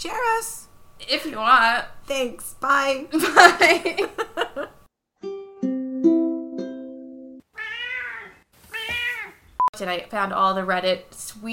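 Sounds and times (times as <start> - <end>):
speech: 0.0 - 5.3, 9.8 - 11.5
cat meowing: 7.5 - 9.4.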